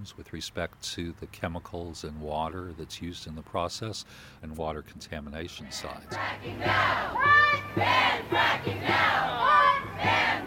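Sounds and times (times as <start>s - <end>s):
speech: 0.0s - 10.4s
protest crowd chanting at anti-fracking rally: 5.8s - 10.4s.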